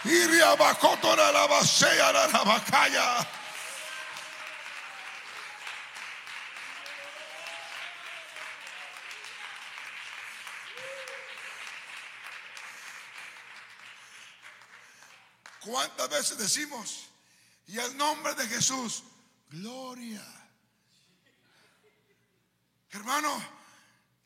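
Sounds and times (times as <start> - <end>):
speech: 0.0 - 3.4, 15.6 - 17.1, 17.7 - 20.4, 22.9 - 23.6
audience clapping: 0.0 - 16.0.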